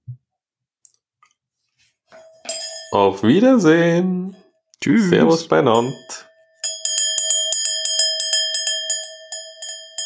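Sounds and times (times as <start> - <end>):
bell being rung: 2.2 - 4.0, 4.9 - 10.0
speech: 2.9 - 6.3.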